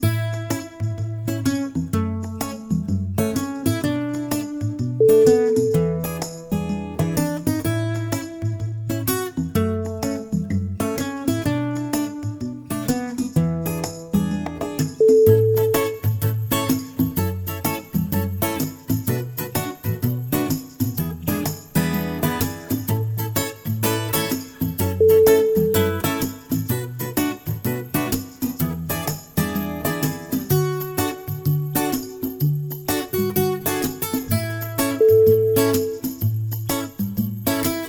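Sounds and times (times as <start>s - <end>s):
acoustic music: 0.0s - 37.8s.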